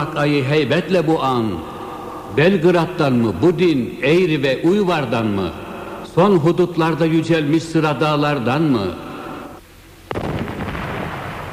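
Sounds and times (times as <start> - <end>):
speech: 0.0 - 1.7, 2.3 - 5.6, 6.2 - 9.0
cannon fire: 10.1 - 11.5.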